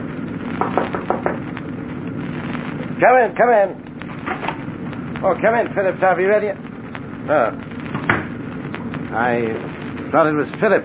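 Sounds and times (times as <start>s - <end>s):
steady low mechanical rumble: 0.0s - 10.8s
knocking on a cabin door: 0.6s - 1.4s
speech: 3.0s - 4.4s, 5.2s - 6.6s, 7.2s - 7.7s, 9.1s - 10.8s.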